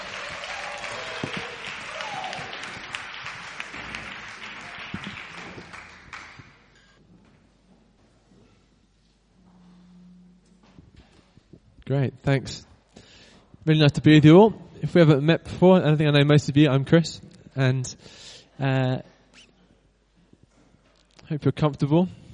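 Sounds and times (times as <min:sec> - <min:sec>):
raucous round of applause: 0:00.0 - 0:06.8
speech: 0:11.9 - 0:12.7, 0:13.6 - 0:19.1, 0:21.3 - 0:22.2.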